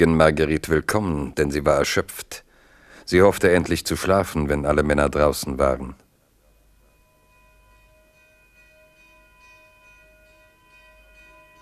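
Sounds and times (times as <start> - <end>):
speech: 0.0 - 2.4, 3.0 - 6.0
church bell ringing the alarm: 6.6 - 11.5.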